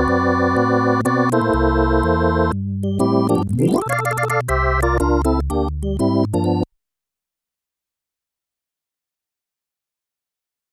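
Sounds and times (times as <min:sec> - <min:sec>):
electronic music: 0:00.0 - 0:06.6.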